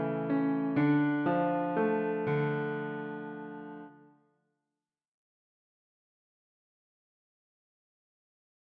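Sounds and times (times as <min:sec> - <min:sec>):
piano: 0:00.0 - 0:04.2.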